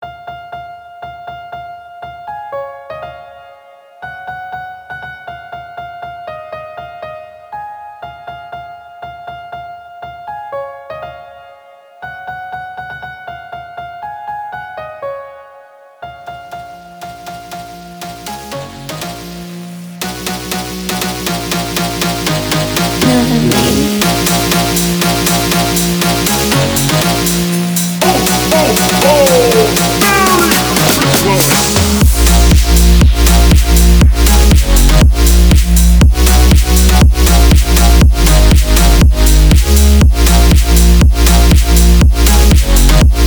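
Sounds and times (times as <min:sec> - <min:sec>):
phonk music: 0:16.8 - 0:43.2.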